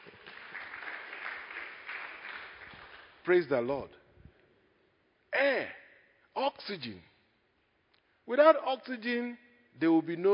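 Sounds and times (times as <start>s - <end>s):
audience clapping: 0.0s - 3.7s
speech: 3.2s - 4.0s, 5.4s - 5.8s, 6.4s - 7.1s, 8.3s - 10.3s.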